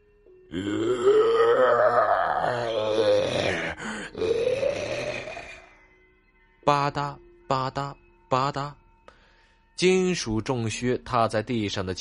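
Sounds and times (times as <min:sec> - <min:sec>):
speech: 0:00.5 - 0:01.7, 0:06.9 - 0:08.8, 0:09.8 - 0:11.9
monster's low guttural growl from the throat: 0:00.6 - 0:05.7.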